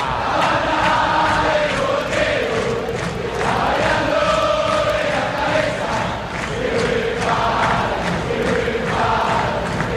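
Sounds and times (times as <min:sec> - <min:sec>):
huge football crowd roaring and chanting in a stadium: 0:00.0 - 0:09.9.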